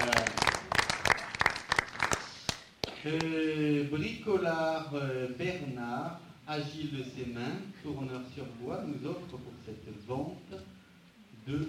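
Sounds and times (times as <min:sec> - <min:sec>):
audience applause: 0:00.0 - 0:03.0
speech: 0:03.0 - 0:10.7, 0:11.4 - 0:11.6.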